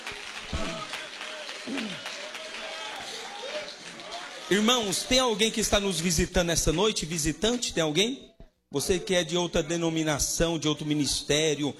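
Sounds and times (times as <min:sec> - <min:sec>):
audience clapping hands: 0:00.0 - 0:07.6
speech: 0:01.7 - 0:02.1, 0:04.5 - 0:11.7.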